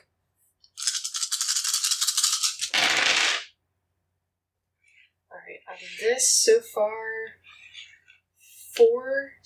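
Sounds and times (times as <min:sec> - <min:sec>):
dice rattling and clattering: 0:00.7 - 0:03.6
speech: 0:05.7 - 0:07.4, 0:08.8 - 0:09.4.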